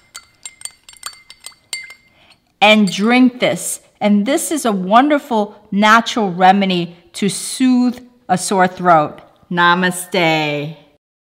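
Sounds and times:
metal spoon clinking against a glass stirring honey into warm water: 0.0s - 3.2s
speech: 2.6s - 10.8s.

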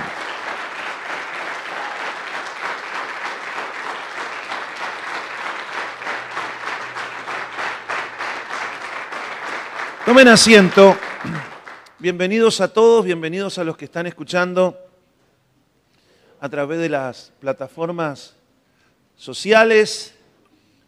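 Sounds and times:
audience applause: 0.0s - 12.0s
speech: 10.1s - 14.8s, 16.4s - 18.4s, 19.2s - 20.2s.

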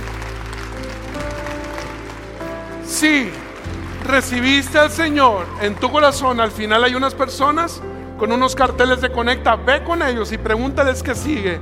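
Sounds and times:
applause: 0.0s - 7.2s
speech: 2.9s - 11.5s.

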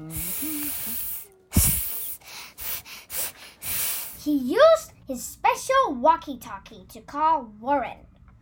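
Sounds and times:
snake hissing: 0.0s - 4.2s
speech: 4.2s - 8.1s.

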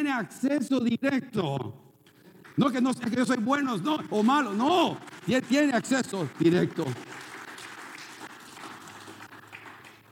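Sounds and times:
speech: 0.0s - 1.8s, 2.6s - 7.3s
crowd clapping: 2.3s - 10.0s.

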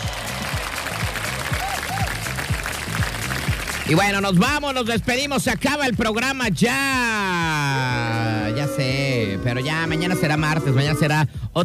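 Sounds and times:
applause: 0.0s - 5.7s
speech: 3.9s - 11.6s.

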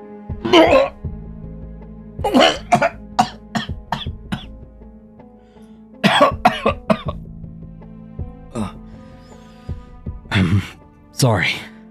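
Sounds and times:
person retching and vomiting into a garbage can: 0.4s - 1.0s, 2.2s - 4.5s, 6.0s - 7.2s
speech: 0.4s - 1.0s, 2.2s - 2.9s, 11.2s - 11.7s.

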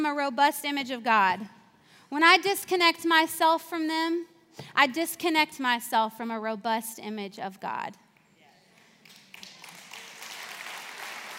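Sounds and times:
speech: 0.0s - 8.0s
audience clapping: 8.7s - 11.3s.

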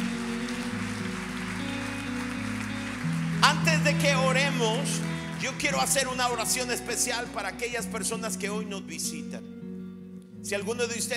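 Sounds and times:
audience applause: 0.0s - 6.7s
speech: 4.0s - 9.5s, 10.4s - 11.1s.

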